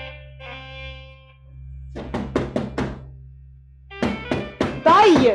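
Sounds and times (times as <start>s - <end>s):
knocking on a door: 1.9s - 3.1s, 4.0s - 5.3s.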